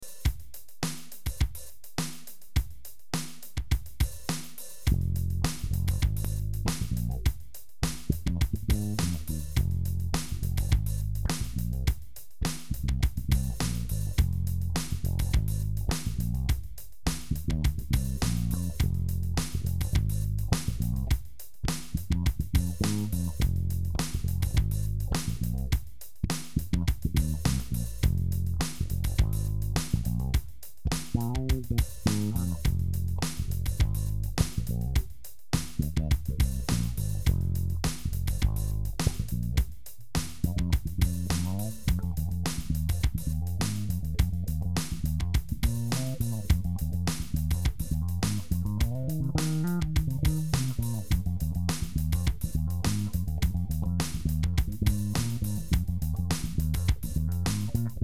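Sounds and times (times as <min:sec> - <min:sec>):
wah bass duo groove: 0:00.0 - 0:58.0.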